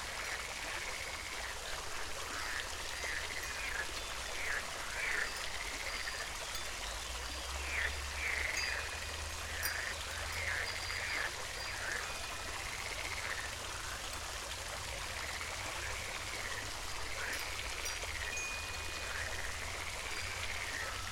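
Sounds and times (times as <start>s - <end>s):
fountain: 0.0s - 21.0s
frogs croaking: 0.0s - 21.0s
wind chimes: 2.9s - 14.3s, 15.8s - 21.0s.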